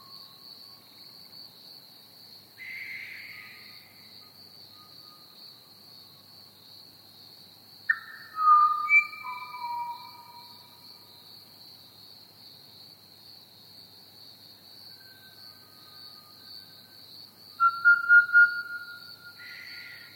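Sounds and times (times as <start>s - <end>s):
Pied Butcherbird song: 7.9s - 10.8s, 17.6s - 20.1s.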